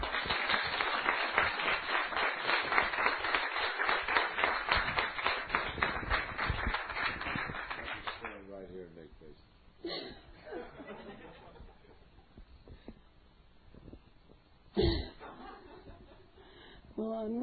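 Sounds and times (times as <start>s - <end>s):
audience applause: 0.0s - 8.4s
laughter: 9.9s - 12.1s, 14.9s - 16.4s.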